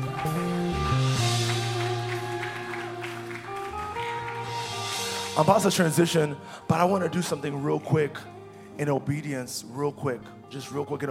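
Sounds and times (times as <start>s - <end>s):
audience clapping: 0.0s - 5.5s
speech: 5.4s - 11.0s.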